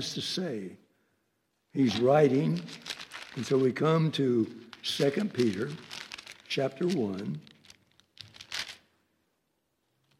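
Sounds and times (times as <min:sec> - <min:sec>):
speech: 0:00.0 - 0:00.8, 0:01.7 - 0:05.9, 0:06.5 - 0:07.5
sticky pages of a Bible being turned: 0:01.8 - 0:08.9.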